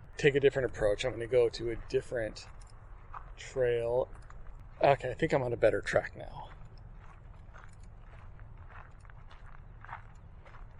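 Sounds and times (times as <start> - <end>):
speech: 0.2 - 2.6, 3.4 - 4.2, 4.8 - 6.6
footsteps walking down a hill on a park trail: 1.7 - 5.0, 6.3 - 10.7.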